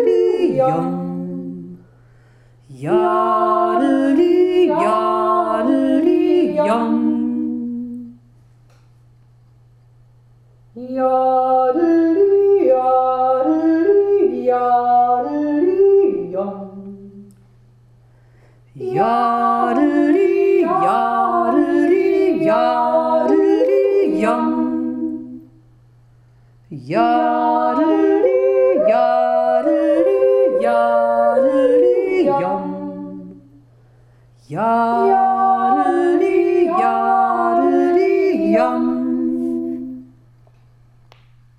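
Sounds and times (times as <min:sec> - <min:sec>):
two voices yodeling: 0:00.0 - 0:01.8, 0:02.7 - 0:08.2, 0:10.8 - 0:17.3, 0:18.8 - 0:25.5, 0:26.7 - 0:33.5, 0:34.5 - 0:40.2.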